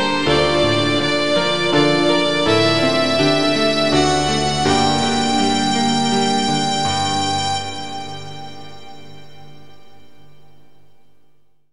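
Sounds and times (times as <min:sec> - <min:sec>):
violin recording of an elegy: 0:00.0 - 0:09.2.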